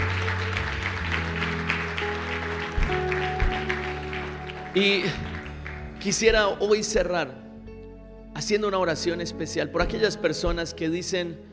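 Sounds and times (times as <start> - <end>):
audience applauding: 0.0 - 6.6
sustained organ or keyboard tones: 0.0 - 11.5
speech: 4.8 - 5.3, 6.0 - 7.4, 8.4 - 11.5.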